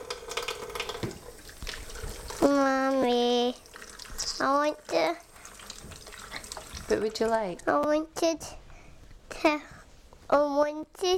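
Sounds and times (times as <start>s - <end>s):
tap water running into a sink while a child washes hands: 0.0s - 7.9s
speech: 6.9s - 8.6s, 9.4s - 9.7s, 10.3s - 11.1s.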